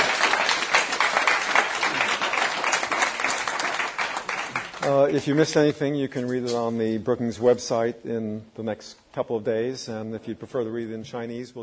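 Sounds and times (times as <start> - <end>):
audience applause: 0.0 - 5.4
speech: 4.8 - 11.6.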